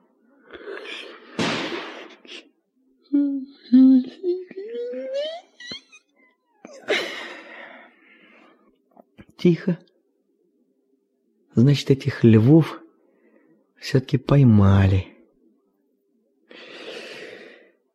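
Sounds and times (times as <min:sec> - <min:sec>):
gunshots: 0:01.4 - 0:02.1
speech: 0:09.4 - 0:09.9, 0:11.6 - 0:12.8, 0:13.8 - 0:15.1.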